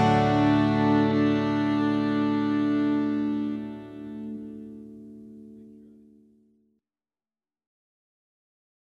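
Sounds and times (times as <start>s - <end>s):
country ballad: 0.0s - 4.7s.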